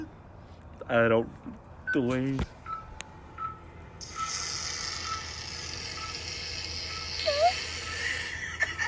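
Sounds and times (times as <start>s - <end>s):
speech: 0.9s - 2.6s
fart played from a video: 4.0s - 8.3s
laughter: 7.9s - 8.8s.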